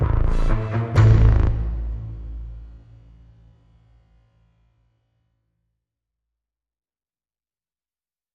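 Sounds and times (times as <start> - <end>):
sound effects: 0.0 - 3.0.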